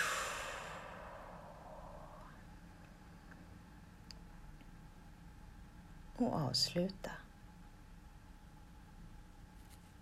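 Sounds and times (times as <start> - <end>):
deep breath in through the nose and out during a breathing exercise: 0.0 - 2.4
speech: 6.2 - 7.2.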